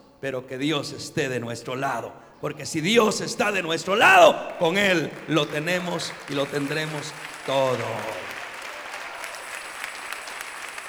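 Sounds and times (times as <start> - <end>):
speech: 0.2 - 8.3
audience applause: 4.2 - 10.8.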